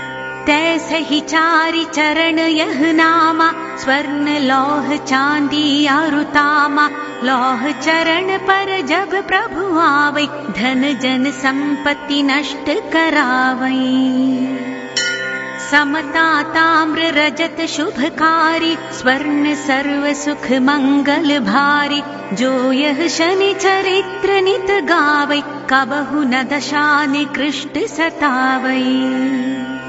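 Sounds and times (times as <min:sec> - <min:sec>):
devotional chanting: 0:00.5 - 0:14.7, 0:15.7 - 0:29.7.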